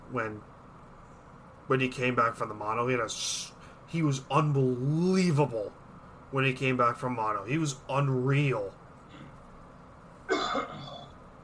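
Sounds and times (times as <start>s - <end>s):
speech: 0.1s - 0.6s, 1.7s - 8.8s
sneeze: 10.3s - 11.1s.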